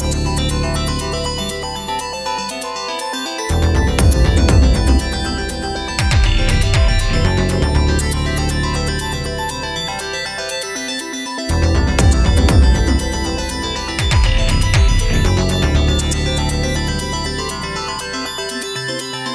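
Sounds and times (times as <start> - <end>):
quirky pretty synth arpeggios: 0.0 - 19.3
hard kick drums: 3.8 - 8.2, 11.8 - 16.2.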